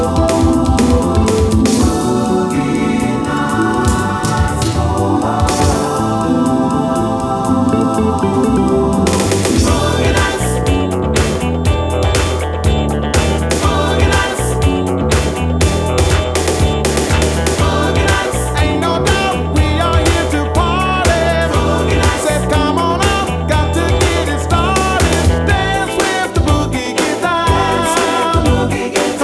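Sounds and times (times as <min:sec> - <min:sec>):
disco music: 0:00.0 - 0:29.2.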